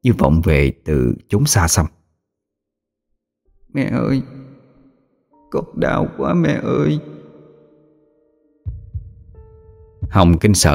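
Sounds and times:
speech: 0.0s - 2.0s, 3.7s - 4.4s, 5.5s - 7.1s, 10.1s - 10.7s
heartbeat thumping: 8.7s - 10.4s.

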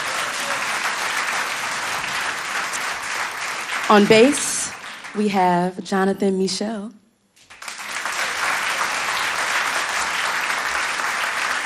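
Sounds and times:
audience applause for a drummer at a jazz concert: 0.0s - 5.2s, 7.4s - 11.6s
speech: 3.9s - 4.5s, 5.2s - 7.0s.

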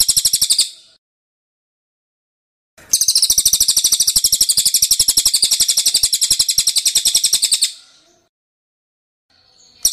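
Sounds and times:
songbird high rapid trills: 2.8s - 7.8s.

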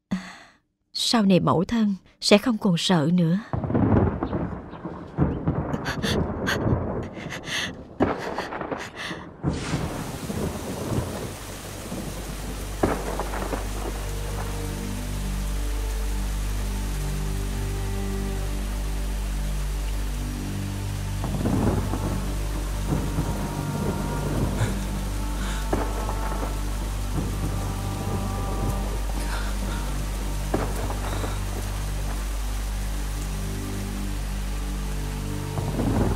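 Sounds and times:
speech: 1.1s - 3.7s
thunder cracking, booming and rumbling: 3.5s - 15.2s, 21.2s - 32.4s, 35.5s - 36.1s
heavy rain: 3.5s - 36.1s.

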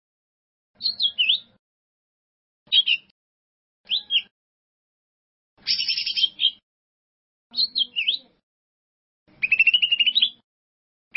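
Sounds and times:
bird song: 0.8s - 1.6s, 2.7s - 3.2s, 3.8s - 4.4s, 5.6s - 6.6s, 7.5s - 8.4s, 9.3s - 10.4s.

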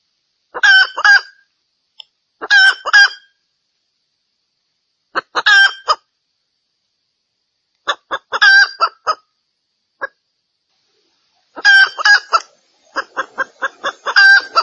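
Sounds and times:
female junglefowl calls: 0.5s - 1.5s, 2.4s - 3.4s, 5.1s - 6.1s, 7.8s - 9.3s, 10.9s - 14.6s.

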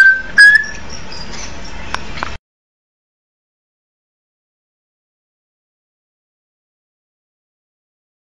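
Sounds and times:
Oriental magpie-robin singing whistled phrases with clicking notes: 0.0s - 2.0s.

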